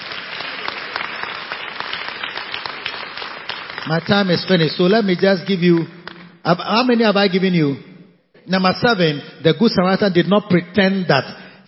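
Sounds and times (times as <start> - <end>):
audience clapping for Jesus: 0.0 - 6.4
speech: 3.8 - 7.9, 8.5 - 11.6.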